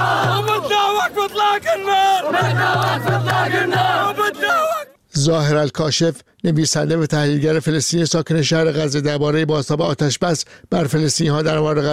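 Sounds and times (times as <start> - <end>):
chanting voices: 0.0 - 5.0
crowd celebrating ceasefire in street, cheering and shouting: 0.0 - 5.0
speech: 1.0 - 11.9.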